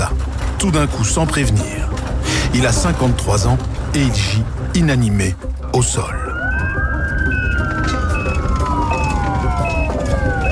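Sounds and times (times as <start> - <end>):
speech: 0.6 - 6.3
ambulance siren wailing: 5.8 - 10.4.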